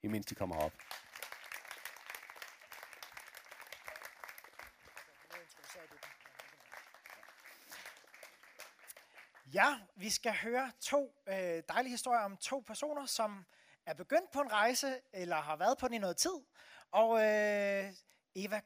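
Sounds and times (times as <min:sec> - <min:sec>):
speech: 0:00.0 - 0:01.1, 0:09.5 - 0:18.6
audience applause: 0:00.3 - 0:09.5.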